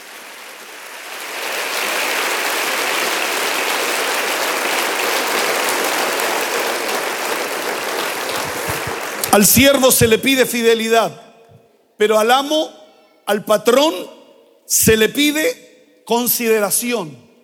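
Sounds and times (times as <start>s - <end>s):
audience applauding: 0.0s - 10.0s
speech: 9.4s - 11.3s, 12.0s - 17.2s.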